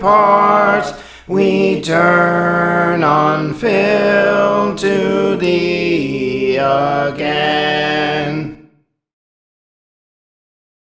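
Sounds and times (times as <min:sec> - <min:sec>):
soprano singing a hymn: 0:00.0 - 0:08.6.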